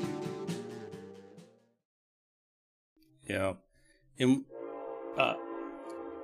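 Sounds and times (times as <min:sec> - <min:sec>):
speech: 0:03.4 - 0:04.5
passing train horn: 0:04.5 - 0:06.2.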